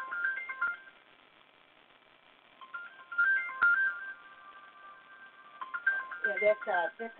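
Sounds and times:
phone ringing with incoming call: 0.0s - 1.0s, 2.6s - 7.1s
speech: 6.4s - 7.1s.

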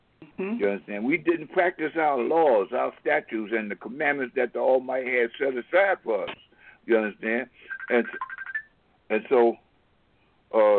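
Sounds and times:
speech: 0.4s - 8.3s, 9.1s - 9.6s, 10.5s - 10.7s
phone ringtone for an incoming call: 7.6s - 8.8s.

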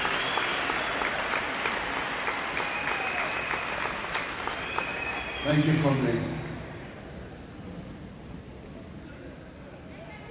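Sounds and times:
standing ovation applause: 0.0s - 5.6s
speech: 5.5s - 6.4s.

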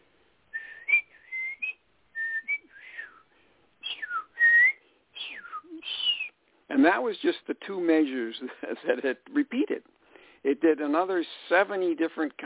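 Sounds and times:
person whistling an imitation of Eurasian blackbird song: 0.6s - 6.4s
speech: 6.8s - 12.4s.

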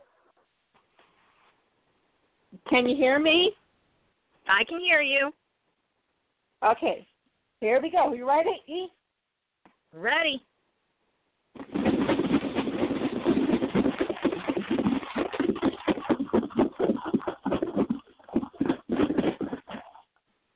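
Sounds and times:
speech: 2.6s - 3.6s, 4.5s - 5.4s, 6.6s - 9.0s, 9.9s - 10.5s
box of paper slips shaken: 11.6s - 20.0s.

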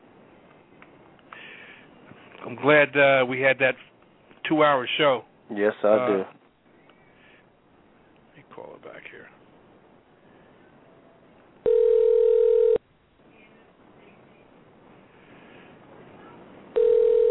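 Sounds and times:
speech: 2.5s - 3.9s, 4.5s - 6.4s
ringback tone on a phone line: 11.6s - 12.8s, 16.8s - 17.2s.

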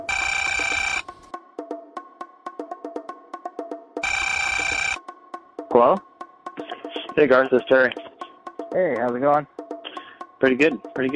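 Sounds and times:
telephone ringing: 0.0s - 1.2s, 4.0s - 5.0s
speech: 5.8s - 6.1s, 7.2s - 8.1s, 8.7s - 9.5s, 10.4s - 11.1s.

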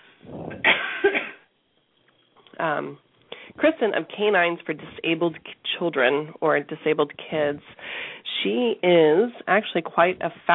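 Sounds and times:
person coughing and choking: 0.4s - 1.5s
speech: 2.6s - 7.8s, 8.4s - 10.5s.

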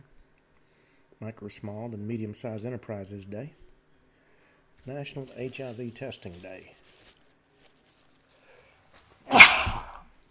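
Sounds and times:
speech: 1.2s - 3.6s, 4.8s - 7.0s
sneeze: 9.3s - 10.1s.

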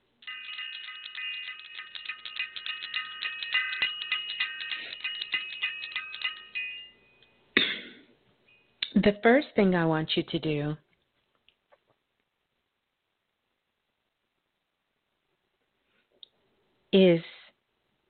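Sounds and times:
ritual bell ringing: 0.2s - 7.4s
speech: 9.0s - 10.8s, 17.0s - 17.3s.

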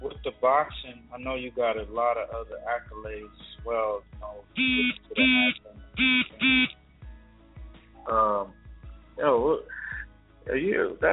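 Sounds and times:
speech: 0.4s - 6.8s, 8.0s - 8.6s, 9.2s - 9.8s, 10.5s - 11.1s
phone Periscope app notification sound: 4.6s - 6.7s.

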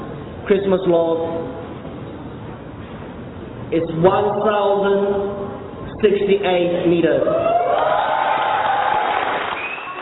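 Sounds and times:
speech: 0.5s - 1.6s, 3.7s - 7.8s
whoops: 7.3s - 10.0s
crowd applause: 7.7s - 10.0s.

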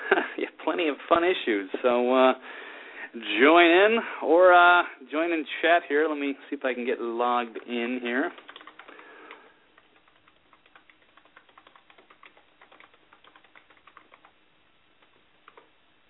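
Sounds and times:
speech: 0.7s - 8.4s
typing on a computer keyboard: 8.3s - 14.4s, 15.0s - 15.7s.

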